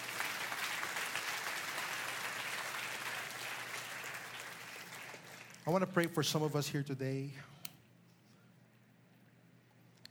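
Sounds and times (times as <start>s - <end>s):
audience applause: 0.0s - 5.9s
speech: 5.7s - 7.5s.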